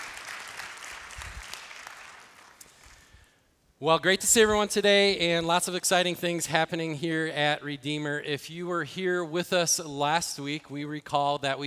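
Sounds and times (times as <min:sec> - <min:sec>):
audience applause: 0:00.0 - 0:03.0
speech: 0:03.8 - 0:11.6.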